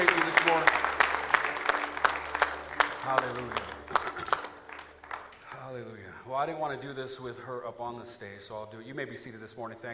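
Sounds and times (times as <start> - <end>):
audience clapping: 0.0 - 5.9
speech: 6.4 - 9.9.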